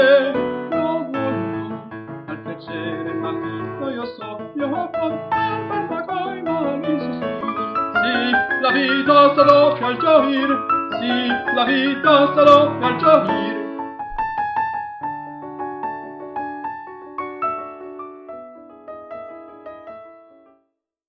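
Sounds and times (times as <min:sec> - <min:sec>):
tenors singing: 0:00.0 - 0:13.7.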